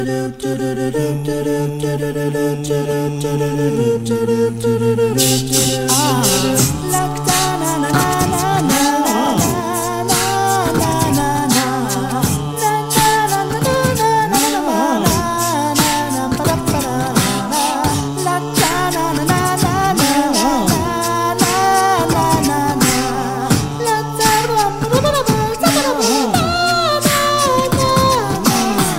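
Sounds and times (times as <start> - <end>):
a cappella singing: 0.0 - 28.9.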